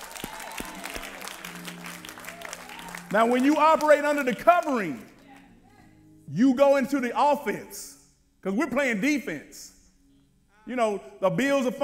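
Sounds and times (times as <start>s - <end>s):
audience hand clapping: 0.0s - 5.5s
speech: 3.1s - 5.1s, 6.3s - 9.7s, 10.7s - 11.8s.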